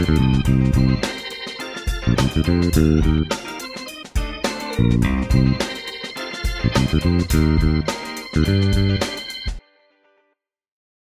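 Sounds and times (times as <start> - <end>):
funk game music loop: 0.0 - 9.6.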